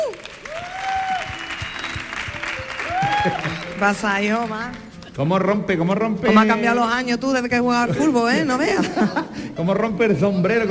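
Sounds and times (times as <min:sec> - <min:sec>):
audience applause: 0:00.0 - 0:04.9
speech: 0:03.2 - 0:10.7
laughter: 0:07.9 - 0:09.5.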